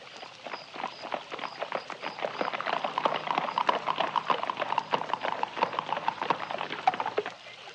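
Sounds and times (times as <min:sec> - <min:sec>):
horse-drawn carriage galloping, hooves clip-clopping: 0:00.0 - 0:07.7.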